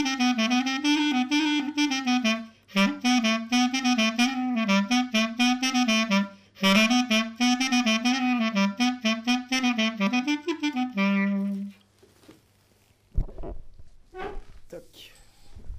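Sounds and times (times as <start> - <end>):
clarinet playing a maraichine folk dance: 0.0 - 11.8.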